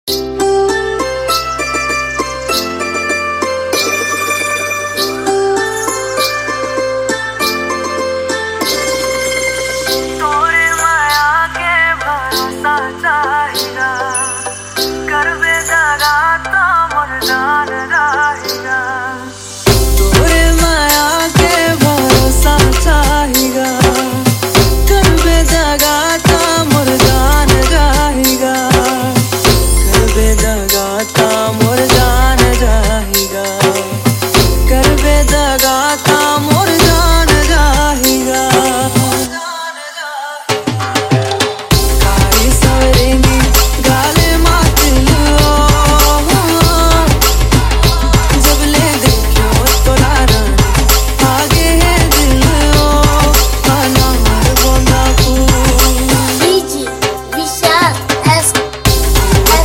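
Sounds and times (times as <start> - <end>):
Chhattisgarhi remix music: 0.1 - 39.8, 40.5 - 59.6.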